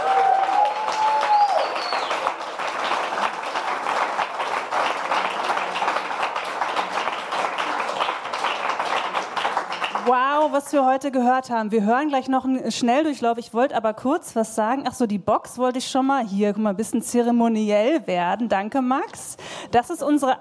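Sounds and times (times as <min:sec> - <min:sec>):
faint cheering: 0:00.0 - 0:03.7
audience applause: 0:00.0 - 0:10.5
speech: 0:10.1 - 0:20.4.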